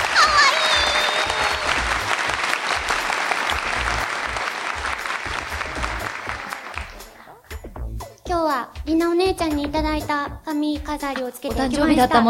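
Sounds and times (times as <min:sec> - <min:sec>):
audience applause: 0:00.0 - 0:07.2
speech: 0:09.4 - 0:12.2.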